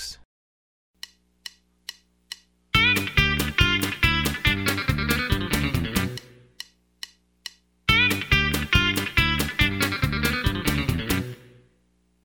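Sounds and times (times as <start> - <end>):
country rock music: 2.8 - 6.5, 7.9 - 11.6.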